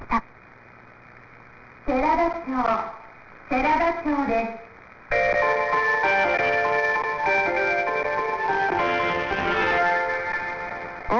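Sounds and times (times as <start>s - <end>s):
speech: 1.9s - 4.6s
train station departure melody: 5.1s - 11.1s.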